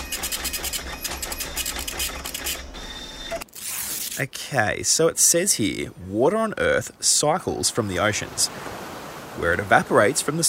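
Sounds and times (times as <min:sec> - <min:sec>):
printer printing a report: 0:00.0 - 0:03.4
speech: 0:04.2 - 0:10.4.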